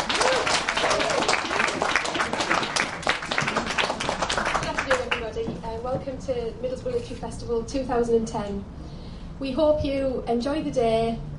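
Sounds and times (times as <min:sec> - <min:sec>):
audience applause: 0:00.0 - 0:05.4
speech: 0:06.3 - 0:08.8, 0:09.4 - 0:11.3.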